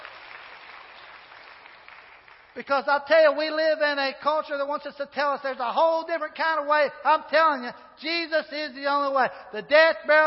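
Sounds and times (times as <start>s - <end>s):
audience applause: 0.0s - 2.6s
speech: 2.6s - 10.2s.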